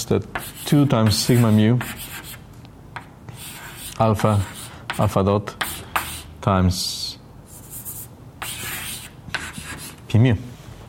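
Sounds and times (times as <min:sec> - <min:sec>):
speech: 0:00.0 - 0:02.1, 0:04.0 - 0:05.6, 0:06.4 - 0:07.0, 0:10.1 - 0:10.5
handwritten strokes of differential operators: 0:00.4 - 0:02.4, 0:03.3 - 0:06.3, 0:07.5 - 0:10.0.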